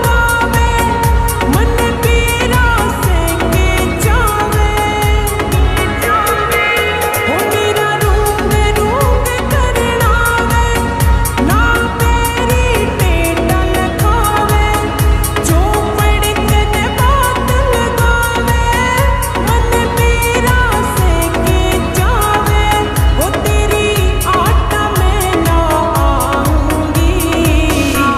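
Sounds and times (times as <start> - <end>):
Haryanvi song slowed with reverb: 0.0 - 28.1.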